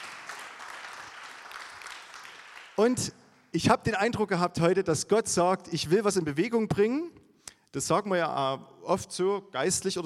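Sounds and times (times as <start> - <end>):
church congregation applauding: 0.0 - 3.1
speech: 2.8 - 10.0.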